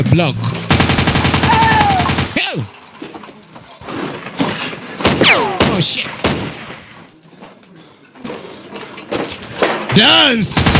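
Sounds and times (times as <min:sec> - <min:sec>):
speech: 0:00.1 - 0:00.5, 0:02.5 - 0:02.8, 0:05.7 - 0:06.6, 0:09.9 - 0:10.7
rapid machine gun fire: 0:00.7 - 0:02.4, 0:05.0 - 0:06.9, 0:10.5 - 0:10.7
sharp swooping sound: 0:05.2 - 0:05.7.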